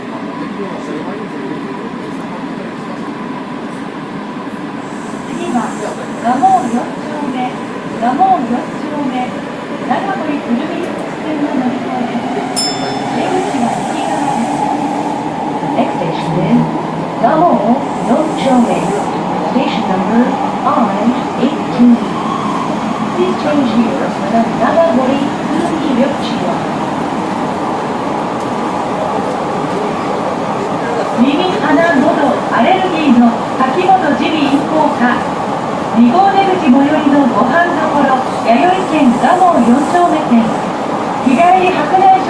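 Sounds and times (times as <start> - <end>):
Osaka Municipal Subway Imazatosuji Line train running: 0.0 - 42.2
murmur of voices: 0.0 - 42.2.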